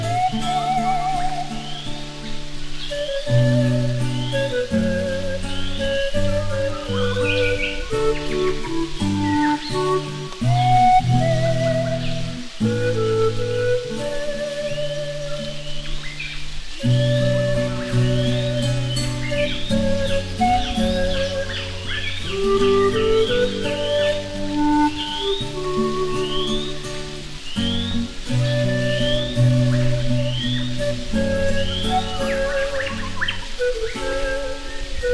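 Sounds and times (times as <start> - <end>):
birds: 0.0 - 35.1
pan flute: 0.0 - 35.1.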